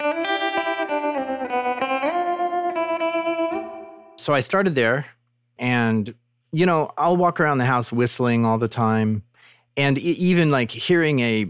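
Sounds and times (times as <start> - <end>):
effects-laden electric guitar solo with chorus: 0.0 - 4.2
speech: 4.2 - 11.4.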